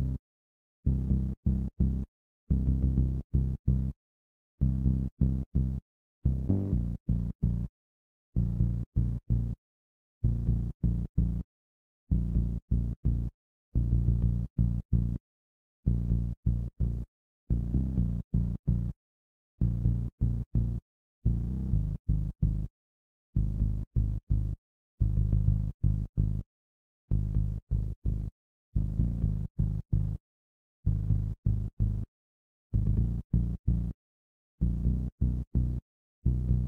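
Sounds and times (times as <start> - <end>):
bass: 0.0 - 0.2, 0.8 - 4.0, 4.6 - 7.7, 8.4 - 9.6, 10.2 - 11.5, 12.1 - 15.2, 15.8 - 19.0, 19.6 - 22.7, 23.4 - 26.5, 27.1 - 30.2, 30.8 - 32.1, 32.7 - 34.0, 34.6 - 36.6.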